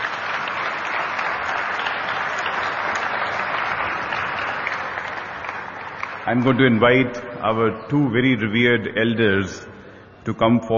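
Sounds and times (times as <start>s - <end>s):
sustained applause from a large audience: 0.0s - 6.8s
speech: 6.3s - 9.7s, 10.3s - 10.7s.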